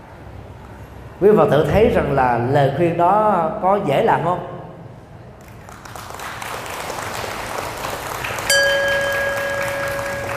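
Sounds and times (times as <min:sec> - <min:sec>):
speech: 0:01.2 - 0:04.6
audience applause at a Buddhist talk: 0:05.5 - 0:10.3
bell strike: 0:08.5 - 0:10.3.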